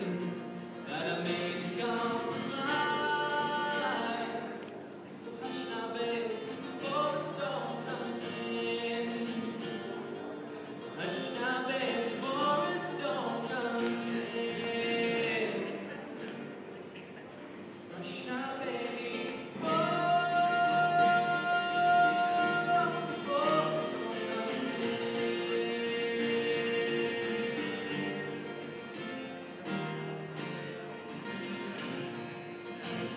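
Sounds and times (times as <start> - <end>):
folk singer singing: 0.0 - 33.1.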